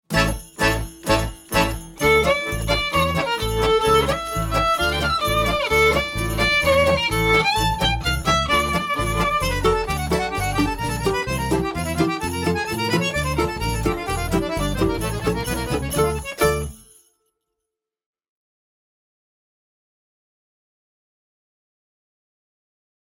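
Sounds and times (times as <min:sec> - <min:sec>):
exam music: 0:00.1 - 0:16.8.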